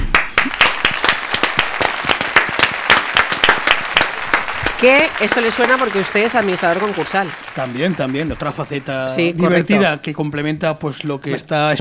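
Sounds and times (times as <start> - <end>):
audience applause: 0.0 - 9.4
speech: 4.8 - 11.7.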